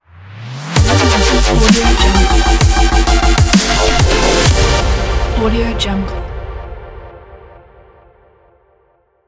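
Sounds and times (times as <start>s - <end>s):
short dubstep logo music: 0.1s - 5.4s.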